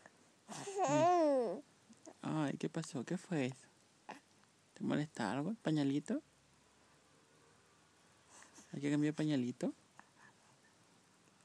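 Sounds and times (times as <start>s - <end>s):
baby babbling: 0.5s - 2.2s
speech: 2.5s - 3.7s, 4.8s - 6.3s, 8.7s - 9.8s.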